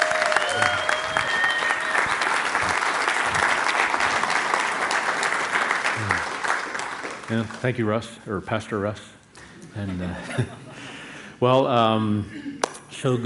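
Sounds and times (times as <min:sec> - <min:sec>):
audience applause welcoming a guest pastor: 0:00.0 - 0:07.6
speech: 0:07.3 - 0:09.2, 0:09.8 - 0:10.6, 0:11.4 - 0:13.2.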